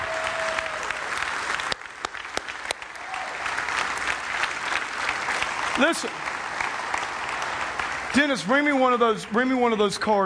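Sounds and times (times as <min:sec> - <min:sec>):
audience applauding: 0:00.0 - 0:10.2
speech: 0:05.8 - 0:06.3, 0:08.2 - 0:10.2.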